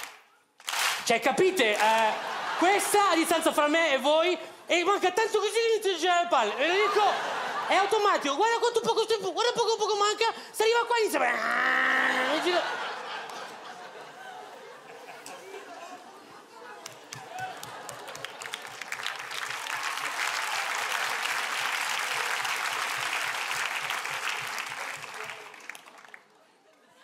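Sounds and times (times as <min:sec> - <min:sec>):
speech: 0:01.1 - 0:11.8, 0:12.4 - 0:12.8
laughter: 0:01.6 - 0:04.0, 0:06.4 - 0:08.8, 0:11.2 - 0:19.6, 0:26.3 - 0:27.0
audience applause: 0:01.7 - 0:03.1, 0:16.8 - 0:26.7.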